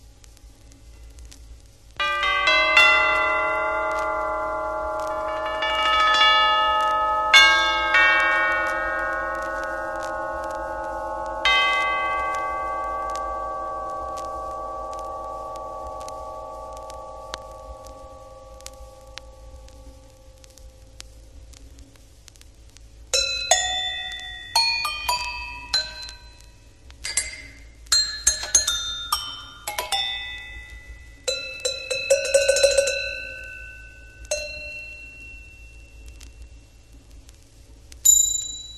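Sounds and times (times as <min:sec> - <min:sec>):
cowbells: 0:02.0 - 0:18.5, 0:23.2 - 0:36.1
tubular bells: 0:02.0 - 0:20.8, 0:23.2 - 0:36.5
gong: 0:02.0 - 0:21.2, 0:23.2 - 0:36.8
vibraphone: 0:23.2 - 0:26.4, 0:27.1 - 0:35.4.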